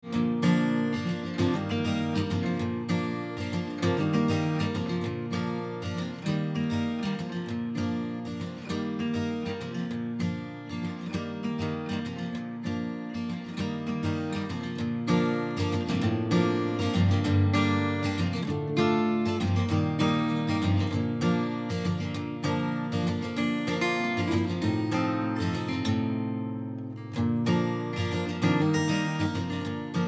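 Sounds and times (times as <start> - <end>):
guitars: 0.0 - 30.0.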